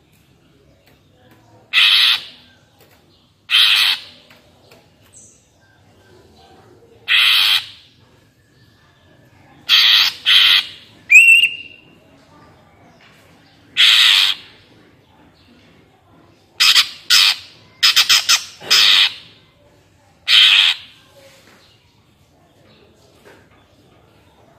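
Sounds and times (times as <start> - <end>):
greater green leafbird squawks: 1.7 - 2.5, 3.5 - 4.2, 7.0 - 7.9, 9.7 - 11.8, 13.8 - 14.6, 16.6 - 19.4, 20.2 - 21.0.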